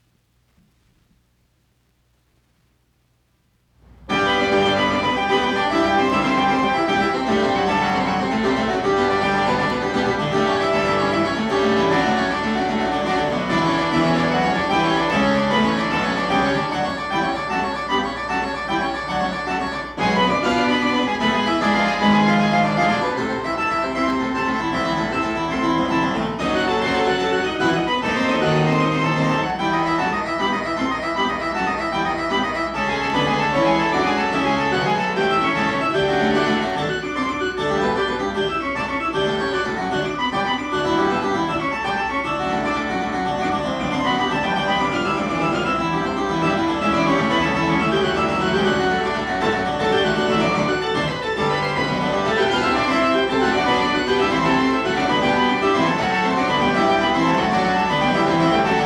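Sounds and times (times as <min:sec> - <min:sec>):
keyboard prelude and fugue in G major: 0:03.9 - 0:58.8.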